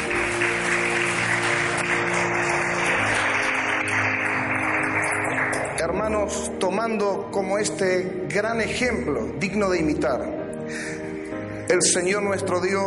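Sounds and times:
audience applause: 0.0s - 6.2s
speech: 6.3s - 10.8s, 11.7s - 12.8s.

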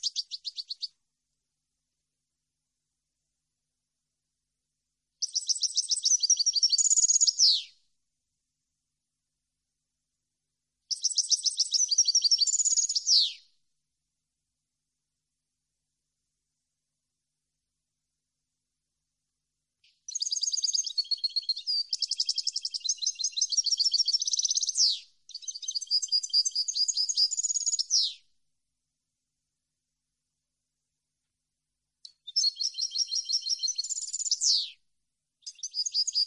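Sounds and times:
European goldfinch song: 0.0s - 1.0s, 5.2s - 7.7s, 10.9s - 13.4s, 19.8s - 28.2s, 32.1s - 34.8s, 35.4s - 36.2s.

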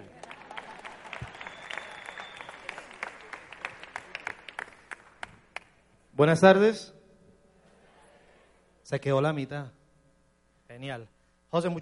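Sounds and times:
audience applause: 0.0s - 5.6s
speech: 6.2s - 7.0s, 8.9s - 9.8s, 10.8s - 11.7s.

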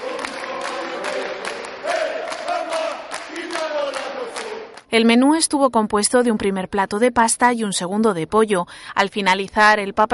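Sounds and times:
inmates clapping: 0.0s - 4.9s
speech: 4.9s - 10.1s.

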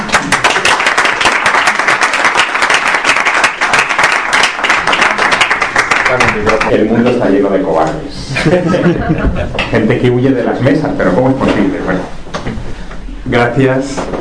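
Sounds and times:
audience applause: 0.0s - 6.8s
speech: 6.4s - 12.2s, 13.3s - 14.1s
laughter: 8.2s - 9.8s.

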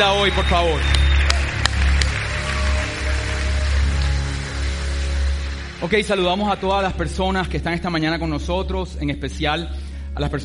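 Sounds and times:
speech: 0.0s - 1.0s, 5.8s - 10.4s
audience applause: 0.0s - 7.2s.

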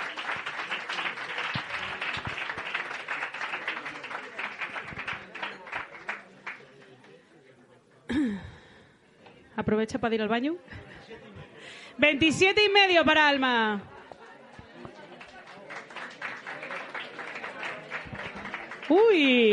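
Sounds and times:
loud audience applause: 0.0s - 6.7s, 14.1s - 19.5s
speech: 9.6s - 10.8s, 12.0s - 13.9s, 18.9s - 19.5s
laughter: 10.6s - 11.9s.

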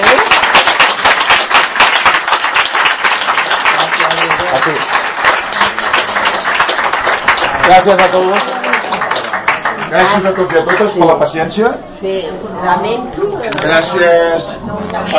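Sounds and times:
audience applause: 0.0s - 11.3s
speech: 7.7s - 8.6s, 9.9s - 15.1s.

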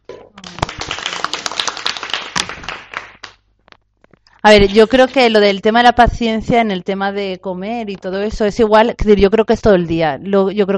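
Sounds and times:
small group clapping: 0.3s - 3.5s
speech: 4.4s - 10.7s.

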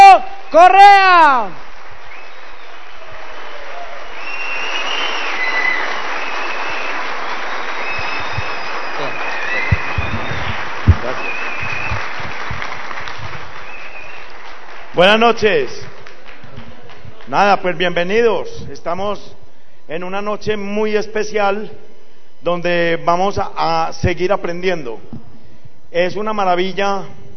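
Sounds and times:
speech: 0.6s - 1.6s, 15.0s - 15.9s, 17.3s - 25.2s, 25.9s - 27.2s
audience applause: 0.7s - 17.4s.

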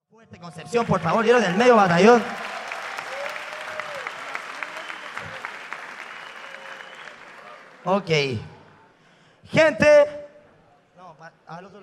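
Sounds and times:
speech: 0.2s - 2.4s, 7.8s - 8.5s, 9.4s - 10.2s, 11.2s - 11.8s
crowd cheering and shouting: 0.5s - 8.0s
crowd applauding: 0.6s - 8.9s
whistles: 2.7s - 7.6s.

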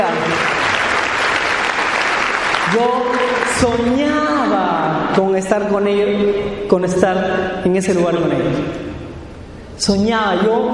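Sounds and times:
crowd applauding: 0.0s - 3.8s
speech: 2.7s - 4.6s, 5.2s - 8.9s, 9.8s - 10.7s.

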